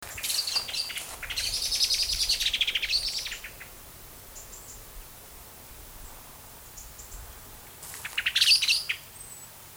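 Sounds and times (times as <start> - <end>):
common blackbird chattering calls: 0.0 - 3.8, 7.9 - 9.1.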